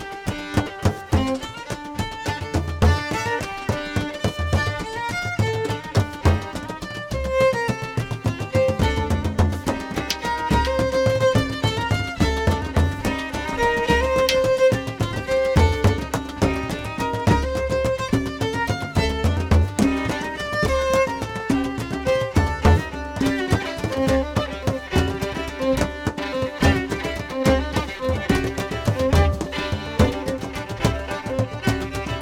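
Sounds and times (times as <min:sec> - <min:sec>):
drum: 0:00.0 - 0:32.2
fiddle: 0:00.0 - 0:32.2.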